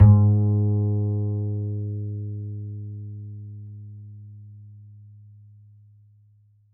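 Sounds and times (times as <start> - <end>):
upright acoustic bass: 0.0 - 5.1.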